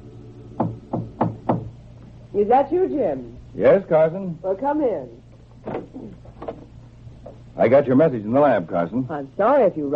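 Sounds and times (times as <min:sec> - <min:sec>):
firm knocks on an office door: 0:00.6 - 0:01.8
speech: 0:02.4 - 0:05.2, 0:07.6 - 0:09.9.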